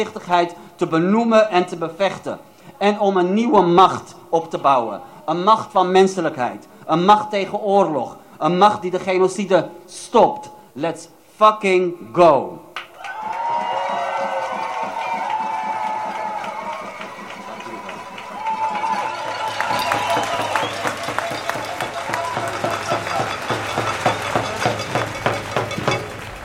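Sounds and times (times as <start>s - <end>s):
speech: 0.0s - 12.6s
crowd cheering and whooping: 12.8s - 26.4s.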